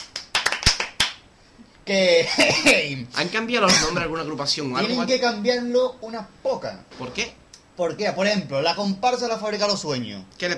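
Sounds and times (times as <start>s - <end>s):
applause: 0.0s - 1.2s
speech: 1.9s - 10.5s.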